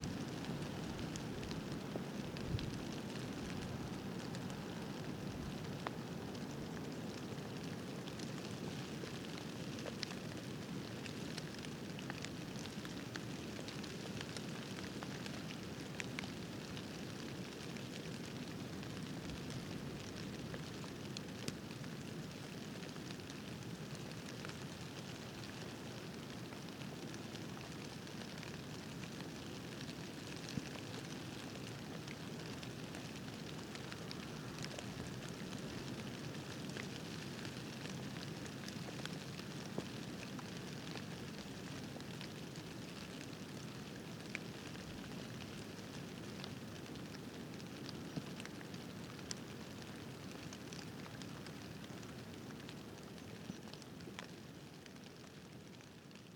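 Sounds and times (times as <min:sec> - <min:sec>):
rain: 0:00.0 - 0:56.3.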